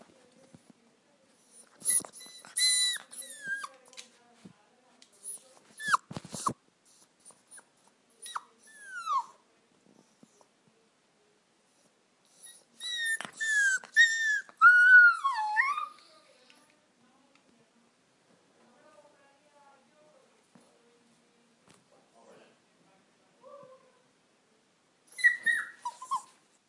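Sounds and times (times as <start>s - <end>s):
puppy crying and whining: 1.5s - 3.8s, 5.2s - 6.6s, 7.2s - 9.4s, 12.3s - 16.1s, 25.1s - 26.4s.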